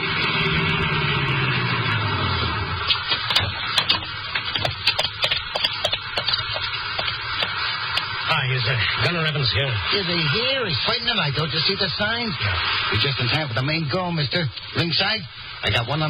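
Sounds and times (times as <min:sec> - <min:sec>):
car driving: 0:00.0 - 0:08.4
speech: 0:09.1 - 0:16.0.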